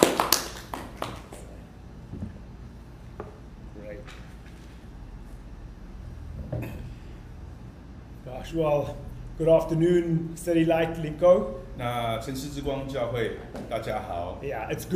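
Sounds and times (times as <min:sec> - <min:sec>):
people clapping: 0:00.0 - 0:01.6
speech: 0:08.4 - 0:14.9.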